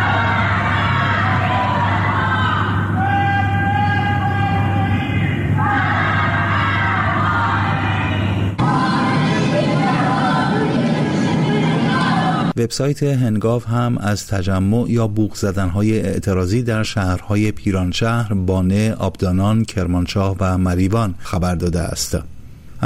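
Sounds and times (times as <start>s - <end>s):
people chanting anti-government slogans in Tehran: 0.0s - 12.6s
speech: 12.6s - 22.3s.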